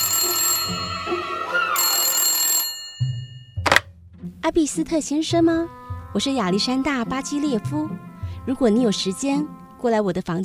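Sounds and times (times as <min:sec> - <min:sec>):
telephone ringing: 0:00.0 - 0:03.9
speech: 0:04.5 - 0:10.4.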